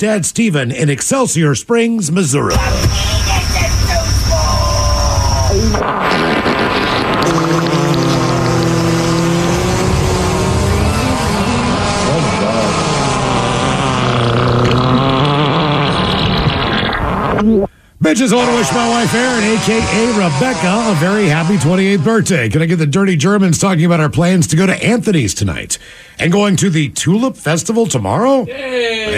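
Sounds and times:
speech: 0:00.0 - 0:03.9, 0:05.6 - 0:06.0, 0:18.1 - 0:29.1
continuous rumbling background: 0:02.5 - 0:17.5
random fart sound effects: 0:02.5 - 0:17.7, 0:18.4 - 0:22.3.

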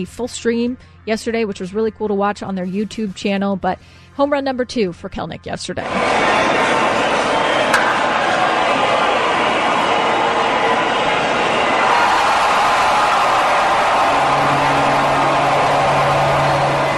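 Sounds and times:
speech: 0:00.0 - 0:06.9
piped-in crowd roar: 0:05.8 - 0:16.9.

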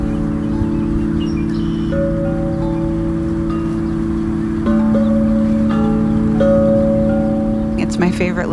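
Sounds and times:
large wind chimes ringing in a giant oak tree: 0:00.0 - 0:08.5.

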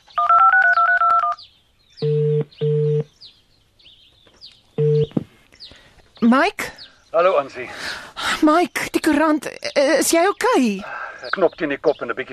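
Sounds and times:
telephone keypad beeps: 0:00.2 - 0:01.4, 0:02.0 - 0:03.1, 0:04.8 - 0:05.2
telephone ringing tones: 0:00.2 - 0:01.4, 0:02.0 - 0:03.1, 0:04.8 - 0:05.1
speech: 0:06.3 - 0:12.3.

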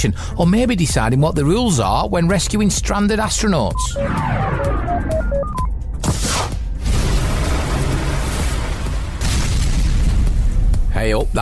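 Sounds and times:
speech: 0:00.0 - 0:05.6, 0:11.0 - 0:11.4
test rocket crashing and exploding: 0:06.0 - 0:10.7.

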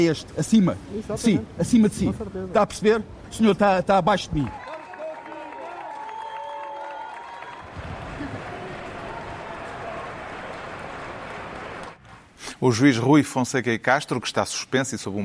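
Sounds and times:
speech: 0:00.0 - 0:04.6, 0:12.6 - 0:15.2
crowd of supporters applauding: 0:04.5 - 0:12.0.

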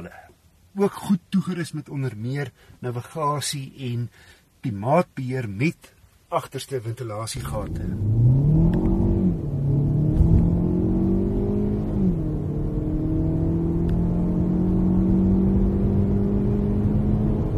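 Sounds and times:
speech: 0:00.8 - 0:08.3
car with a 1.6 turbo engine accelerating hard from 0 to 100 km/h: 0:07.5 - 0:17.5.

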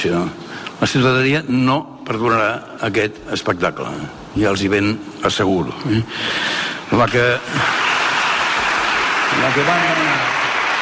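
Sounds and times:
speech: 0:00.0 - 0:07.9, 0:09.4 - 0:10.4
applause in a council chamber: 0:07.4 - 0:10.7.

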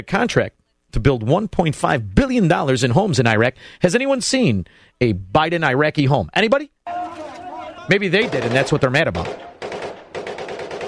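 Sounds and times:
speech: 0:00.0 - 0:06.7, 0:07.9 - 0:09.6
machine gun fire: 0:07.1 - 0:10.8.

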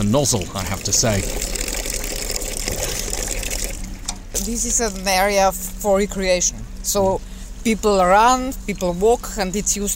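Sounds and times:
running splashing fountain water: 0:00.0 - 0:05.4
speech: 0:00.1 - 0:01.6, 0:04.4 - 0:09.9
dog slurping water from a fountain: 0:00.3 - 0:03.9.

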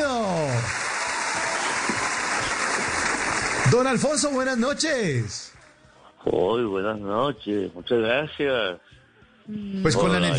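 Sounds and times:
applause: 0:00.0 - 0:05.6
speech: 0:03.7 - 0:05.5, 0:06.2 - 0:10.3.

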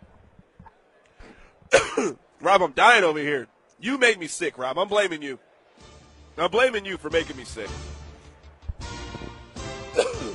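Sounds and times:
person coughing: 0:01.7 - 0:02.2, 0:10.0 - 0:10.3
speech: 0:01.7 - 0:05.4, 0:06.4 - 0:07.9.

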